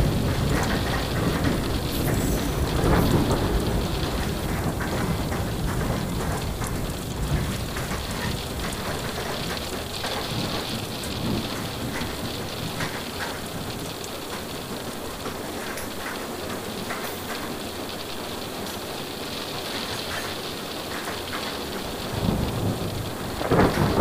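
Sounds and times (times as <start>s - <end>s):
thunder rumbling: 0.0s - 14.7s, 21.0s - 23.9s
rain pattering during a train journey: 0.0s - 23.9s.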